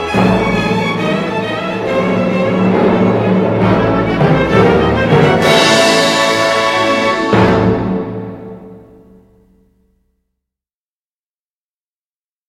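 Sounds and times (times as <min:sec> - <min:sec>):
waltz music: 0:00.0 - 0:09.5.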